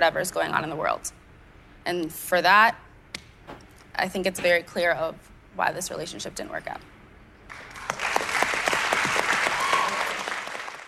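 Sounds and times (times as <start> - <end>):
speech: 0.0 - 1.2, 1.8 - 2.8, 3.5 - 6.9
audience applause: 7.5 - 10.8.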